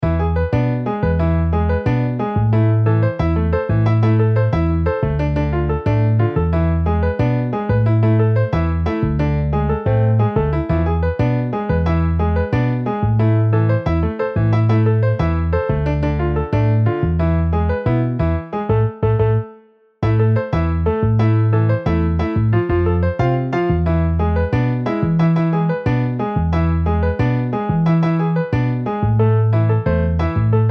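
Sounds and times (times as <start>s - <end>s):
MIDI piano and bass: 0.0s - 30.6s.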